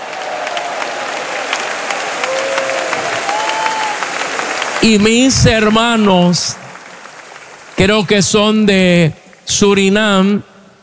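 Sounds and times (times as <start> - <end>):
audience applause: 0.0 - 8.6
speech: 4.8 - 6.6, 7.8 - 10.5.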